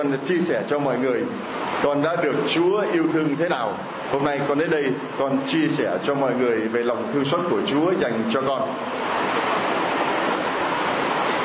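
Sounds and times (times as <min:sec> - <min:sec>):
speech: 0:00.0 - 0:09.6
heavy rain: 0:00.0 - 0:11.4.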